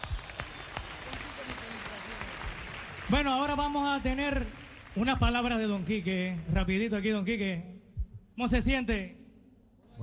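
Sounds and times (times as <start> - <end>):
crowd applause for a salsa orchestra at an anniversary concert: 0.0 - 5.5
speech: 3.1 - 7.7, 8.4 - 9.2.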